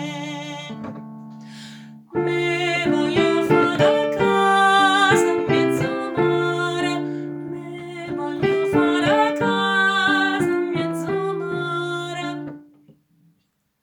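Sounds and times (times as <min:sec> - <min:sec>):
contralto voices singing a fisherman's song: 0:02.2 - 0:12.6.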